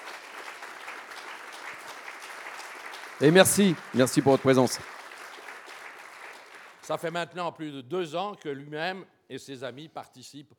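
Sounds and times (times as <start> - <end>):
audience applause: 0.0 - 7.0
speech: 3.2 - 4.9, 6.9 - 10.5.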